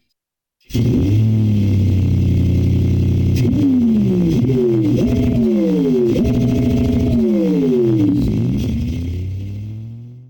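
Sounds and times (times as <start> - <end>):
V8 engine: 0.7 - 10.2.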